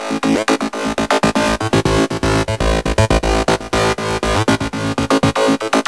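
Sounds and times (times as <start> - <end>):
synth lead: 0.1 - 5.8.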